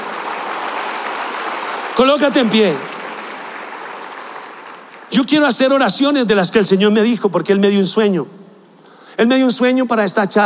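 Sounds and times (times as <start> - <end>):
audience applause: 0.0 - 5.4
speech: 2.0 - 2.9, 5.1 - 8.4, 9.2 - 10.4.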